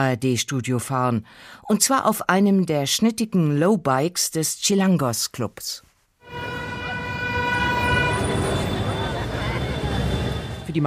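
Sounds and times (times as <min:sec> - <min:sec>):
speech: 0:00.0 - 0:06.5
sustained car horn: 0:06.2 - 0:10.5
dense traffic roaring on busy potholed boulevards in central Mexico City: 0:06.3 - 0:10.8.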